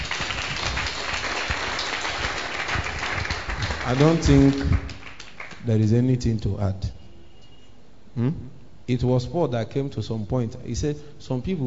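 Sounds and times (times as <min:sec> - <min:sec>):
audience clapping: 0:00.0 - 0:05.7
speech: 0:03.9 - 0:04.9, 0:05.6 - 0:07.0, 0:08.2 - 0:11.6.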